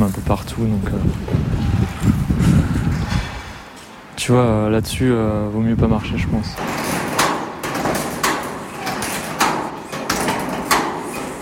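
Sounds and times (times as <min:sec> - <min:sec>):
speech: 0:00.0 - 0:02.7, 0:04.2 - 0:06.8
metal roof sheets shifting in the wind: 0:06.5 - 0:11.4.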